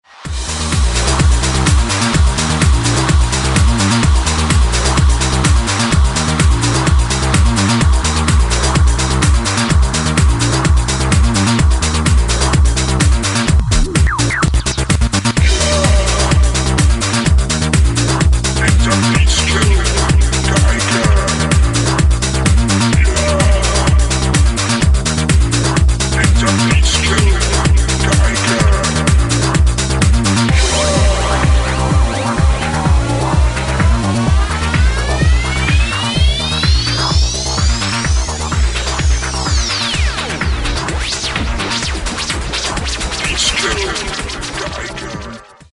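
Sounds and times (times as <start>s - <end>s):
disco music: 0.0s - 45.7s.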